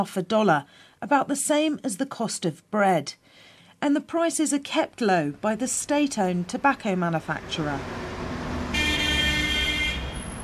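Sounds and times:
speech: 0:00.0 - 0:08.2
heavy traffic on Alexandria's seafront boulevard: 0:05.4 - 0:10.4
long sustained car horn: 0:08.6 - 0:10.4.

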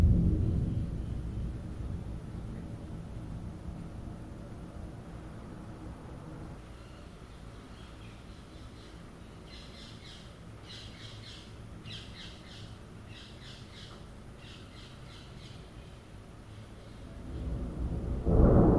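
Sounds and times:
thunderstorm: 0:00.0 - 0:06.6, 0:17.1 - 0:18.7
noisy birds: 0:06.5 - 0:17.5.

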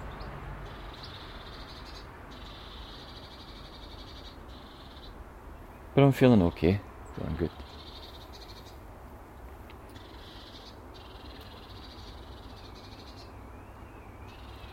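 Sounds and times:
birds calling in the morning: 0:00.0 - 0:14.7
speech: 0:06.0 - 0:07.6.

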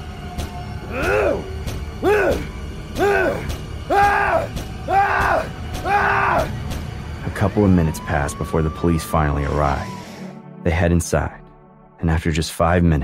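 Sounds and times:
man wailing: 0:00.9 - 0:06.5
speech: 0:07.6 - 0:10.0, 0:10.6 - 0:11.4, 0:12.0 - 0:13.0.

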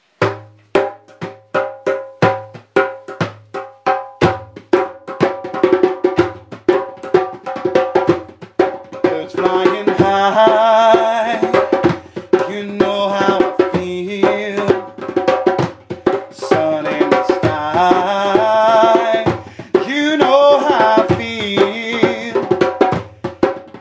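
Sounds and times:
djembes: 0:00.2 - 0:23.8
vocals: 0:08.5 - 0:23.8.

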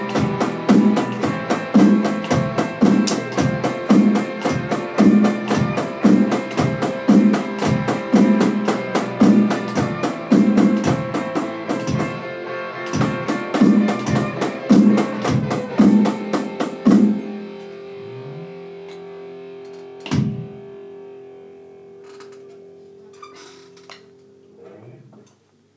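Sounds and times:
four-four rock drum beat: 0:00.0 - 0:17.7, 0:20.0 - 0:20.6.

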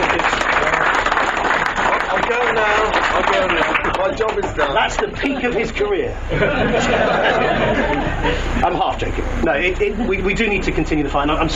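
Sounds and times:
laughter: 0:00.0 - 0:01.2, 0:02.2 - 0:08.7, 0:09.6 - 0:10.9
round of applause: 0:00.0 - 0:05.1
speech: 0:03.4 - 0:11.5.

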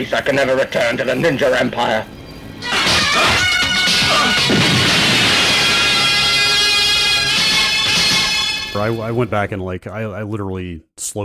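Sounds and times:
speech: 0:00.0 - 0:03.5, 0:08.7 - 0:11.2
high ringing siren-like tones: 0:00.4 - 0:09.2
movie explosion: 0:02.7 - 0:08.7.

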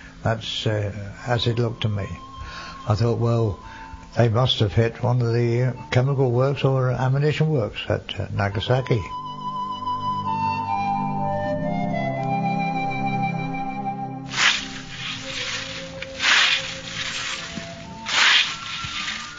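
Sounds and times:
music: 0:00.0 - 0:19.3
speech: 0:00.2 - 0:09.2
scythe cutting corn at Tregevis Farm, St. Martin: 0:14.3 - 0:19.3.

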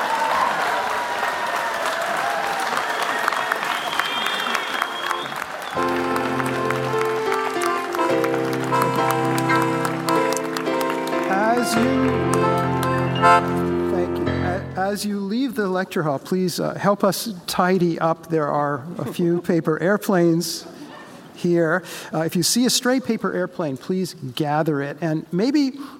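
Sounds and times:
audience applause during stage photo: 0:00.0 - 0:13.8
speech: 0:14.9 - 0:20.8, 0:21.4 - 0:25.9.

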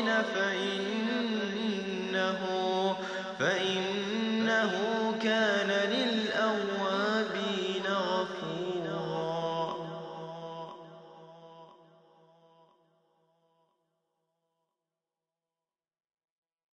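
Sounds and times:
Quran recitation: 0:00.0 - 0:11.8.

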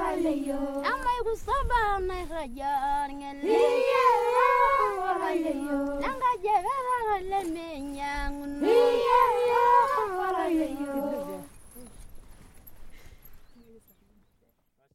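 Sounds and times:
Maasai song for female circumcision celebrations: 0:00.0 - 0:11.6.

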